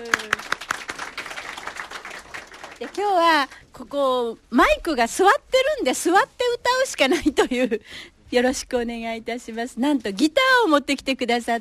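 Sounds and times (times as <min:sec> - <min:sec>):
small audience clapping at a radio show: 0:00.0 - 0:03.5
speech: 0:02.8 - 0:11.5.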